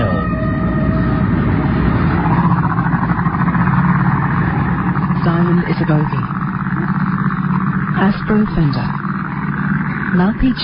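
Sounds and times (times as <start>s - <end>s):
motorboat engine droning: 0.0s - 10.6s
speech: 5.8s - 6.4s, 8.0s - 9.0s, 10.1s - 10.6s.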